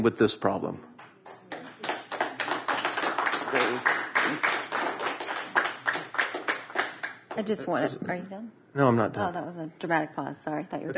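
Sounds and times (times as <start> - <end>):
speech: 0.0 - 0.9, 3.5 - 4.6, 7.4 - 10.9
audience clapping: 1.0 - 7.6.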